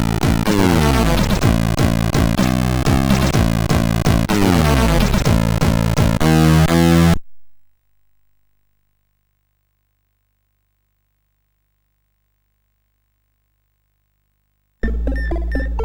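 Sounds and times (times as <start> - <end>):
MOS6581R4 SID chip music: 0.0 - 7.2, 14.8 - 15.8.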